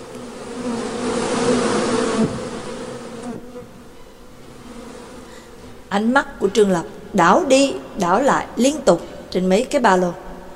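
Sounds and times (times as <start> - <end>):
flying insect swarm buzzing: 0.0 - 5.9
speech: 6.0 - 10.2.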